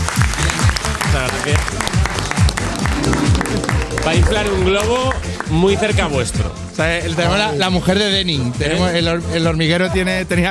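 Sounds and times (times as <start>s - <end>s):
studio audience applause: 0.0s - 5.6s
speech: 1.4s - 2.0s, 4.1s - 10.4s.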